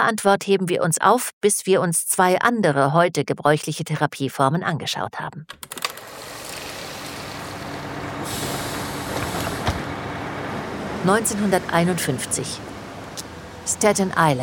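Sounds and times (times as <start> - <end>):
speech: 0.0 - 6.1, 11.0 - 12.7, 13.7 - 14.4
bus pulling away with low engine rumble: 5.9 - 14.4
bus air brake hiss: 6.6 - 9.9.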